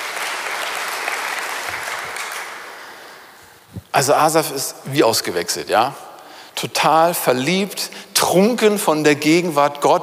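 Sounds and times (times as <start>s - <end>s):
applause: 0.0s - 3.2s
speech: 4.0s - 10.0s.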